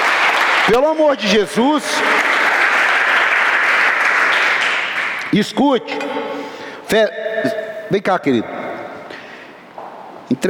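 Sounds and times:
audience applause: 0.0 - 5.3
speech: 0.7 - 2.3, 5.3 - 8.6, 10.3 - 10.4.

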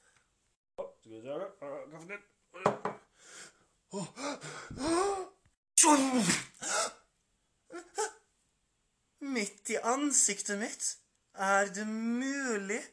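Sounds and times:
speech: 1.1 - 2.8, 3.9 - 5.0, 5.9 - 6.4, 9.8 - 12.9
breathy gasps and strained vocal sounds: 3.1 - 5.4
sneeze: 5.8 - 7.0.

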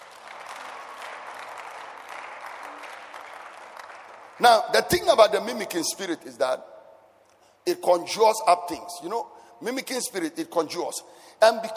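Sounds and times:
audience clapping: 0.0 - 5.1
speech: 4.4 - 6.7, 7.6 - 11.7.

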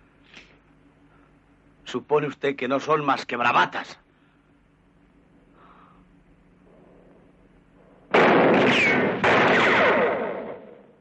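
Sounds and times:
speech: 1.9 - 4.0
gunshots in a 1960 western film: 8.1 - 10.9.

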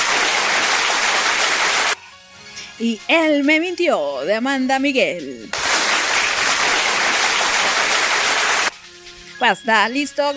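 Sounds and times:
crowd applause: 0.0 - 2.0, 5.6 - 8.7
speech: 2.8 - 5.7, 9.4 - 10.3.

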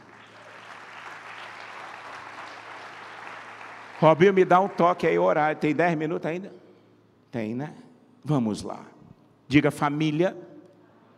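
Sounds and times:
audience applause: 0.0 - 5.0
speech: 4.0 - 6.6, 7.3 - 10.5.

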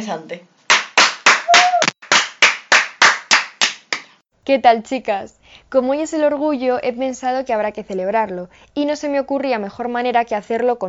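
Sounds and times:
speech: 0.0 - 0.6, 4.5 - 10.8
applause: 0.7 - 4.2.

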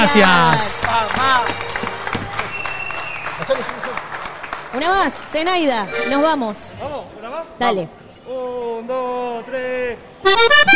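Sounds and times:
speech: 0.0 - 1.6, 3.4 - 4.1, 4.7 - 10.7
audience applause: 0.0 - 6.0.

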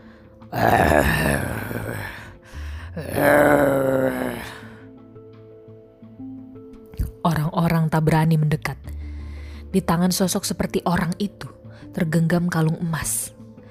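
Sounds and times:
speech: 0.5 - 2.1, 8.1 - 8.7, 9.7 - 13.4
creature growling hoarsely: 0.5 - 2.4, 3.0 - 4.7.

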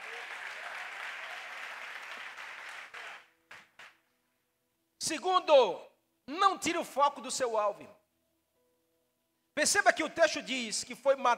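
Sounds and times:
audience applause: 0.0 - 4.0
speech: 5.1 - 8.0, 9.6 - 11.3.

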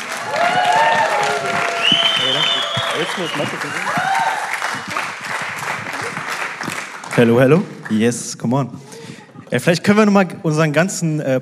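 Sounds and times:
audience applause: 0.0 - 8.1
speech: 3.0 - 4.0, 7.2 - 8.9, 9.5 - 11.4.

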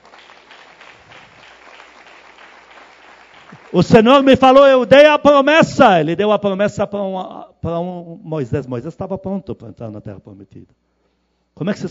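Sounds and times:
audience applause: 0.0 - 4.4
speech: 3.7 - 10.9, 11.6 - 11.8.

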